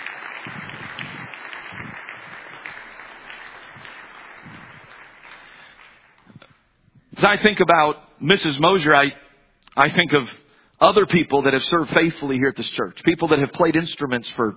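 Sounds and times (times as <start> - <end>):
crowd applause: 0.0 - 6.2
speech: 7.2 - 9.2, 9.8 - 14.5.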